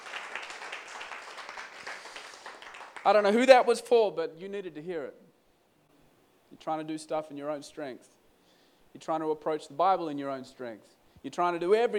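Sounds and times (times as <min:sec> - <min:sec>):
crowd clapping: 0:00.0 - 0:03.3
speech: 0:03.0 - 0:05.3, 0:06.6 - 0:08.2, 0:08.9 - 0:11.9.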